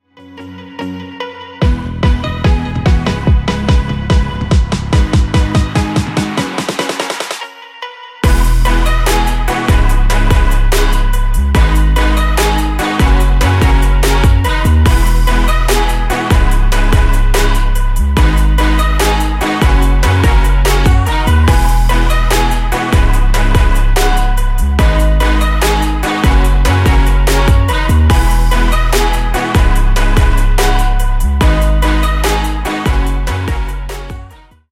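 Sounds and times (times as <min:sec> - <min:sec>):
pop music sample: 0:00.2 - 0:34.6.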